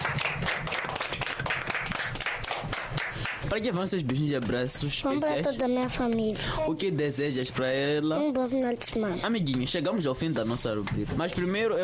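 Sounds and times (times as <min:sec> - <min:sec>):
crowd applauding: 0:00.0 - 0:03.6
speech: 0:03.5 - 0:11.8.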